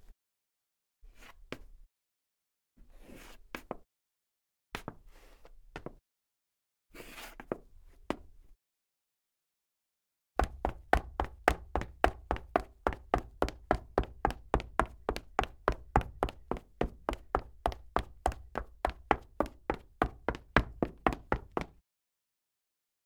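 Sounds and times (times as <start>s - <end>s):
high heels footsteps on wood parquet: 10.4s - 21.7s.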